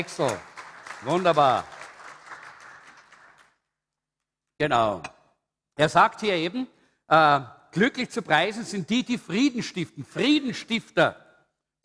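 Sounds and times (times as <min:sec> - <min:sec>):
speech: 0:00.0 - 0:01.7, 0:04.6 - 0:05.1, 0:05.8 - 0:11.2
audience applause: 0:00.0 - 0:03.6.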